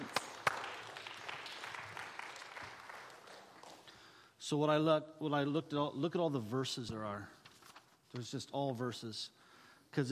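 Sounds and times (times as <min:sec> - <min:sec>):
audience applause: 0:00.0 - 0:03.9
speech: 0:04.5 - 0:07.4, 0:08.1 - 0:10.0.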